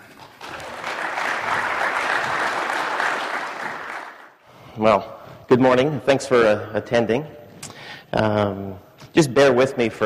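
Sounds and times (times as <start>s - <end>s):
audience applause welcoming a speaker at a mining-technology presentation: 0.0s - 4.4s
speech: 4.8s - 7.4s, 8.1s - 10.0s.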